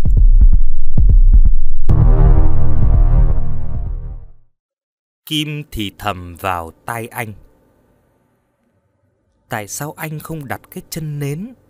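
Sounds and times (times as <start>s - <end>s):
heartbeat sound effect quickening: 0.0s - 4.0s
speech: 5.3s - 7.4s, 9.5s - 11.6s.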